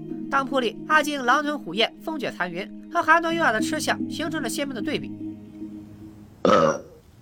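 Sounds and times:
speech: 0:00.3 - 0:05.2, 0:06.4 - 0:06.9
burp: 0:06.4 - 0:07.0.

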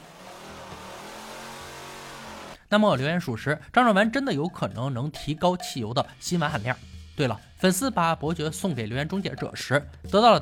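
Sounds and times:
car engine revving: 0:00.0 - 0:02.6
speech: 0:02.7 - 0:10.3.

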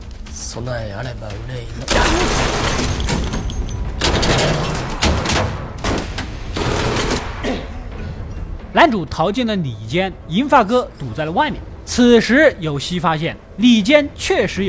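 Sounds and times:
speech: 0:00.4 - 0:03.2, 0:04.3 - 0:04.9, 0:08.7 - 0:14.6
burst of gunfire: 0:04.0 - 0:07.5.

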